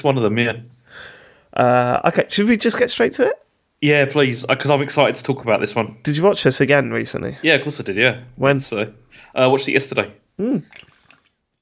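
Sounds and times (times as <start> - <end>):
speech: 0.0 - 10.9
sipping beer: 10.4 - 11.4.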